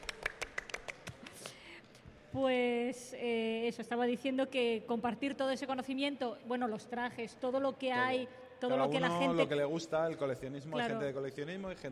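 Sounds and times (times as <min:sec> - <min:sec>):
audience hand claps at a live comic convention: 0:00.0 - 0:01.5
speech: 0:02.3 - 0:11.9.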